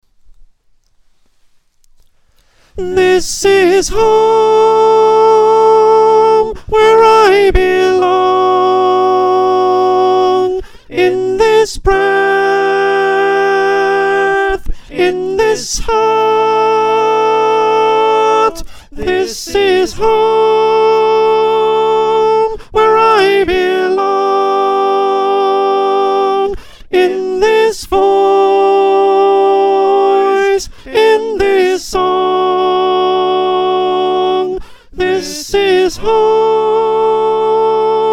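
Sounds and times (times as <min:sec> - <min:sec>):
choir with soprano: 0:02.8 - 0:06.2, 0:07.2 - 0:38.1.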